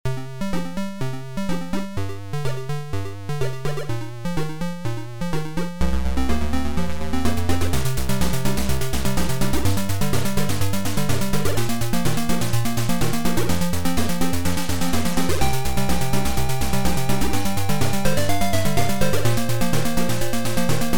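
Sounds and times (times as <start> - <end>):
game music: 0.1 - 20.9.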